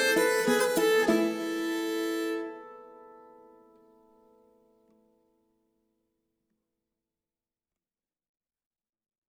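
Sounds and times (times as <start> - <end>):
nyckelharpa playing a polska: 0.0 - 3.6.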